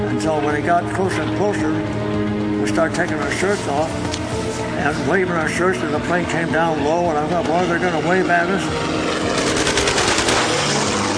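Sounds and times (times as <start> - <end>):
speech: 0.2 - 4.1, 4.8 - 9.6
machine gun firing: 9.2 - 11.1.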